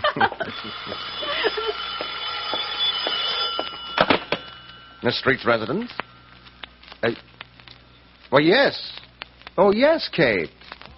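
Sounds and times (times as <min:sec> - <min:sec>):
speech: 0:00.2 - 0:01.0, 0:05.0 - 0:06.0, 0:07.0 - 0:07.3, 0:08.3 - 0:09.0, 0:09.6 - 0:10.6
telephone ringing: 0:00.4 - 0:06.4.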